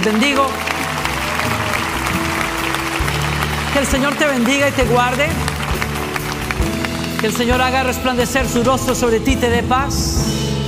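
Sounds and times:
speech: 0.0 - 0.8, 3.7 - 5.6, 7.2 - 10.5
crowd applauding: 0.0 - 8.5.

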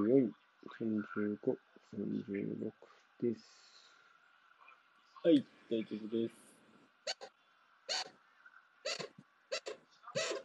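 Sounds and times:
speech: 0.0 - 3.8, 5.2 - 6.4, 7.0 - 7.3
chinchilla squeaks: 7.0 - 7.3, 7.9 - 8.1, 8.8 - 10.4.

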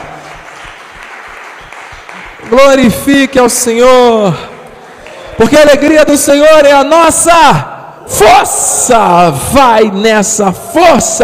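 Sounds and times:
audience applauding: 0.0 - 2.9
speech: 2.5 - 4.5, 5.4 - 11.2.

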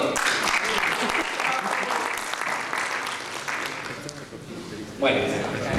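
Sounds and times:
audience applause: 0.0 - 4.2
speech: 5.0 - 5.6.

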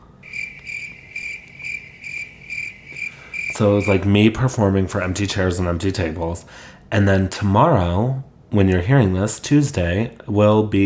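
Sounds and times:
cricket chirping sound effect: 0.0 - 4.2
speech: 3.6 - 10.8.

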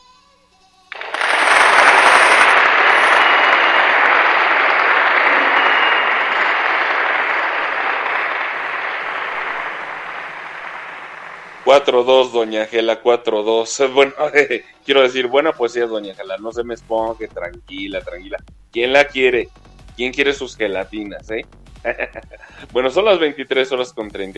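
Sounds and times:
audience applause: 0.9 - 12.3
speech: 11.7 - 24.3
laughter: 14.0 - 14.8, 21.8 - 23.0.

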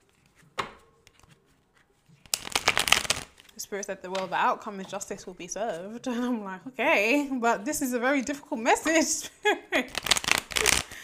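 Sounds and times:
cards shuffling for a card reading: 0.0 - 3.6, 9.8 - 11.0
speech: 3.6 - 10.0.

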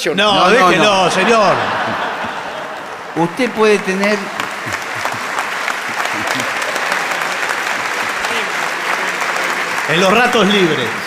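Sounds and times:
speech: 0.0 - 2.0, 3.2 - 4.4, 9.9 - 11.0
laughter: 0.2 - 11.0
crowd applause: 0.3 - 11.0.

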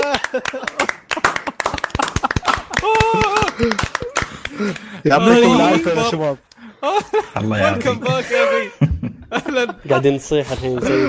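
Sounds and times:
hand clapping: 0.0 - 5.0
speech: 0.2 - 1.0, 4.6 - 11.0
voices talking and laughing: 2.5 - 11.0.

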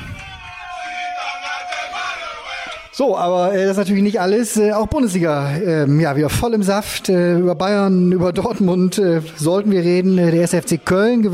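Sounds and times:
football players chanting loudly together: 0.0 - 3.0
speech: 3.0 - 11.3.

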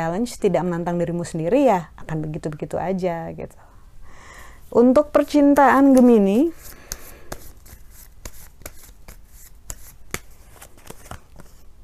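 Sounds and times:
speech: 0.0 - 3.7, 4.7 - 6.8
tarot cards being shuffled and drawn: 5.5 - 11.6.

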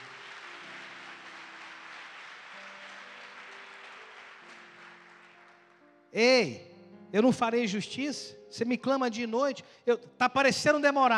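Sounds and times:
audience applause: 0.0 - 5.8
speech: 6.1 - 11.1.

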